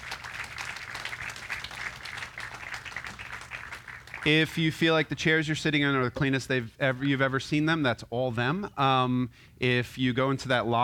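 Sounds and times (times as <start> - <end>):
audience applause: 0.0 - 4.5
speech: 4.2 - 10.8.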